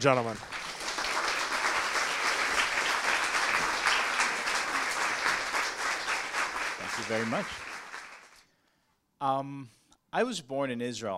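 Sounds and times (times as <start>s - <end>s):
speech: 0.0s - 0.5s, 7.0s - 7.6s, 9.2s - 11.1s
audience applause: 0.0s - 8.4s.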